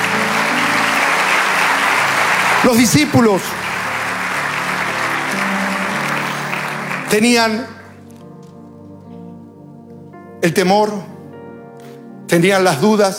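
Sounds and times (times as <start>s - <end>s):
audience applause: 0.0s - 9.3s
speech: 2.6s - 3.6s, 7.1s - 7.8s, 10.4s - 11.1s, 12.3s - 13.1s.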